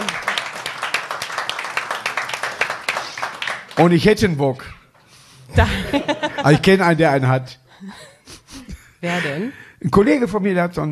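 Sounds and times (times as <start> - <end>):
audience clapping: 0.0 - 4.4
speech: 3.8 - 4.8, 5.5 - 8.1, 9.0 - 10.8
laughter: 5.5 - 6.8.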